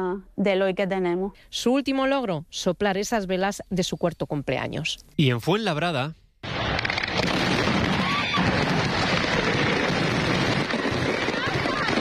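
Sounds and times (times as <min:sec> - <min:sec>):
speech: 0:00.0 - 0:06.2
fireworks rockets exploding: 0:06.4 - 0:11.9.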